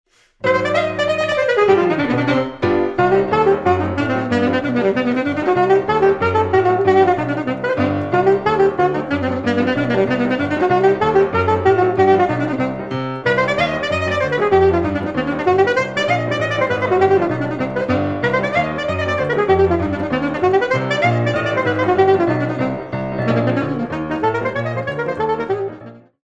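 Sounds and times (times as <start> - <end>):
piano playing a dance: 0.2 - 26.2
saxophone playing a dance: 0.2 - 26.2.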